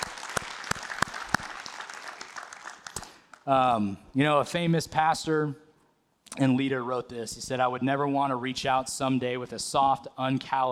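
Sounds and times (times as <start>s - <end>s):
audience applauding: 0.0s - 3.4s
speech: 3.4s - 5.6s, 6.4s - 10.7s.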